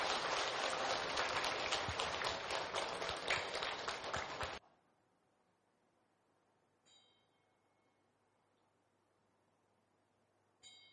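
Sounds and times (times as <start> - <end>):
applause: 0.0 - 4.6.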